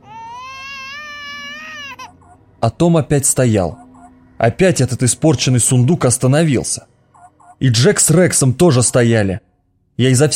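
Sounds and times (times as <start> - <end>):
baby crying: 0.0 - 2.4
speech: 2.6 - 3.8, 4.4 - 6.9, 7.6 - 10.3.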